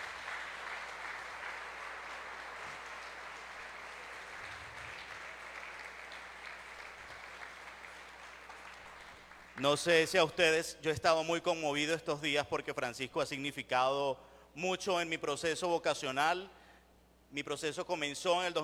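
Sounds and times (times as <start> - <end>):
audience applause: 0.0 - 9.7
speech: 9.6 - 16.6, 17.3 - 18.6.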